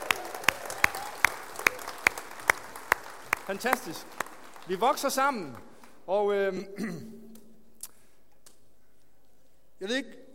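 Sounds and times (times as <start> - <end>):
people clapping to welcome guests at a gathering: 0.0 - 6.1
speech: 3.5 - 7.2, 9.8 - 10.3.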